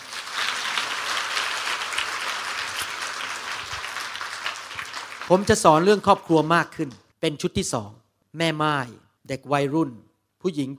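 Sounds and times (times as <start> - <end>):
audience clapping hands: 0.0 - 6.4
speech: 5.3 - 10.7.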